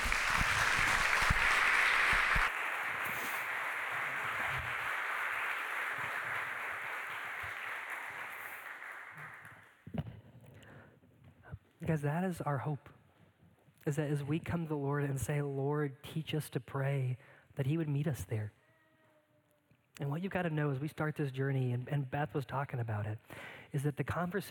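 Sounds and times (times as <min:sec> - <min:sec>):
audience applause: 0:00.0 - 0:09.7
speech: 0:11.9 - 0:13.0, 0:13.8 - 0:18.6, 0:20.0 - 0:24.4.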